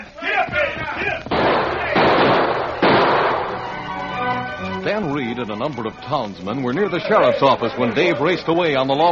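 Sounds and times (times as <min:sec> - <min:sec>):
gunshot rumbling echo: 0:00.7 - 0:04.2
gunshots: 0:01.3 - 0:03.8
speech: 0:05.0 - 0:09.1.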